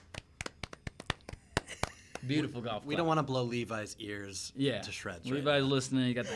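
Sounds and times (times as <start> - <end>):
small round of applause: 0.0 - 2.4
speech: 2.2 - 6.3.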